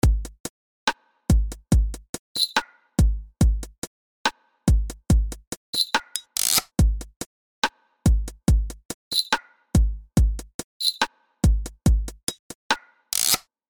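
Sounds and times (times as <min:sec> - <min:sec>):
drum loop: 0:00.0 - 0:00.5, 0:01.3 - 0:03.9, 0:04.7 - 0:07.3, 0:08.1 - 0:12.6.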